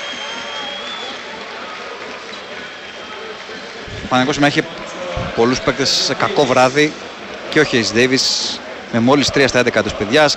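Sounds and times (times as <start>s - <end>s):
Panathinaikos crowd applauding: 0.0s - 7.5s
speech: 4.1s - 4.8s, 5.4s - 10.3s.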